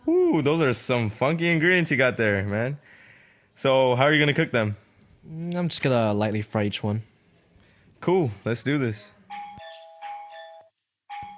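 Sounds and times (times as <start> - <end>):
speech: 0.3 - 3.0, 3.6 - 7.1, 8.0 - 9.4
doorbell ringing: 9.3 - 11.3.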